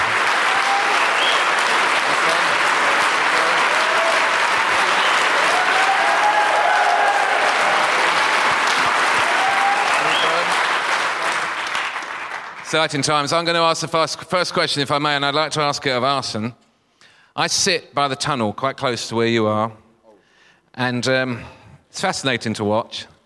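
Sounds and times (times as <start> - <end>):
audience applause at a live talk event: 0.0 - 12.8
speech: 12.7 - 16.6, 17.4 - 19.8, 20.8 - 23.1.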